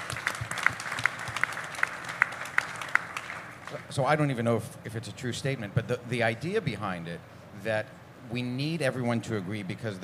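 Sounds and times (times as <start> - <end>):
audience applause: 0.0 - 3.9
speech: 3.7 - 10.0.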